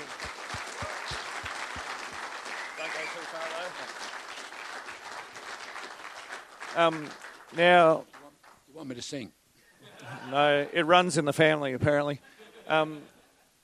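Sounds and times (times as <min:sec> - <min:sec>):
audience applause: 0:00.0 - 0:08.6
speech: 0:06.8 - 0:08.1, 0:08.8 - 0:09.4, 0:10.1 - 0:13.2.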